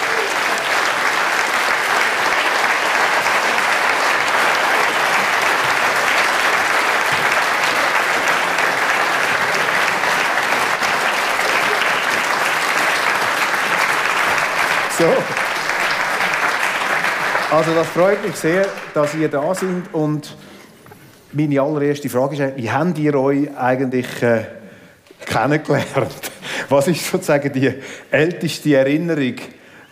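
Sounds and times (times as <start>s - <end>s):
audience applause: 0.0s - 20.2s
speech: 17.6s - 20.6s, 21.3s - 24.6s, 25.3s - 29.9s.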